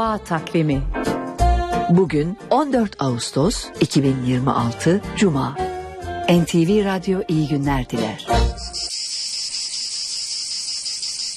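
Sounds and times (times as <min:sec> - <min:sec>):
speech: 0:00.0 - 0:01.2, 0:01.9 - 0:05.7, 0:06.3 - 0:09.0
cicada buzzing: 0:08.5 - 0:11.3.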